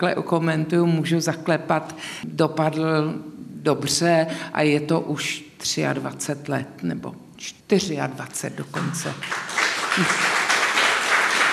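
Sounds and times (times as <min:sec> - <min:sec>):
speech: 0:00.0 - 0:10.3
audience applauding at a live talk event: 0:09.2 - 0:11.5.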